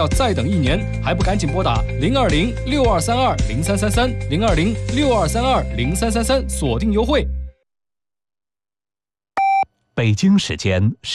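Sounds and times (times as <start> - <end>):
speech: 0.0 - 7.4, 10.0 - 11.1
radio half-hour time signal beeps: 9.4 - 9.6.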